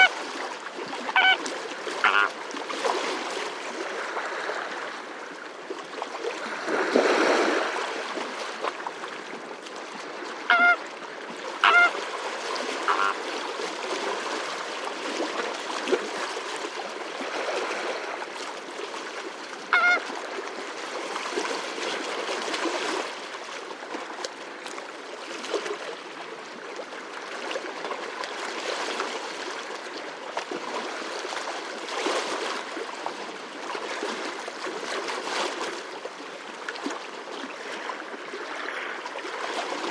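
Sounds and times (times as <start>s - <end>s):
waves lapping at Etang Vaccares: 0.0s - 39.8s
great egret calling: 1.0s - 2.4s, 10.4s - 10.9s, 11.6s - 12.0s, 12.8s - 13.3s, 19.7s - 20.1s
flamingos calling: 1.1s - 1.4s, 2.0s - 2.3s, 10.5s - 10.8s, 11.6s - 12.0s, 12.8s - 13.2s, 19.7s - 20.0s
frogs croaking: 1.1s - 1.4s, 2.0s - 2.3s, 11.6s - 11.9s, 12.9s - 13.2s
stilts calling: 1.1s - 1.4s, 2.0s - 2.3s, 11.6s - 12.0s, 12.9s - 13.2s.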